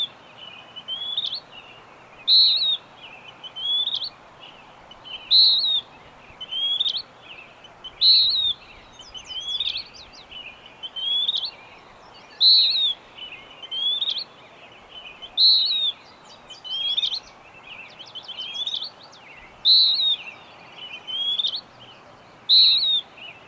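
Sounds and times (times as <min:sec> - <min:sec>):
steady hiss: 0:00.0 - 0:23.4
bird whistling phrases: 0:02.3 - 0:04.1, 0:05.1 - 0:07.0, 0:07.9 - 0:09.9, 0:10.8 - 0:11.5, 0:12.3 - 0:14.3, 0:15.2 - 0:17.3, 0:19.6 - 0:21.7, 0:22.5 - 0:23.4.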